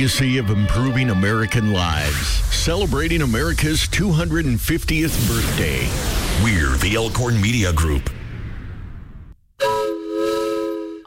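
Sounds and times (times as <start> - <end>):
speech: 0.0 - 8.2
Sumter Valley Railroad steam train whistle: 9.6 - 11.0.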